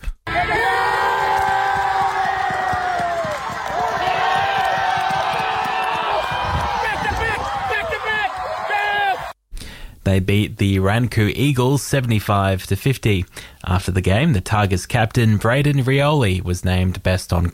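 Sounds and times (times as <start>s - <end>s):
football crowd cheering: 0.3s - 9.4s
speech: 10.1s - 17.5s.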